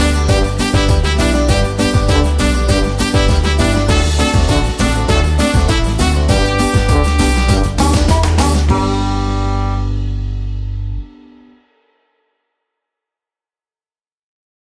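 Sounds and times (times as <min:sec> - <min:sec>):
instrumental backing track: 0:00.0 - 0:11.5.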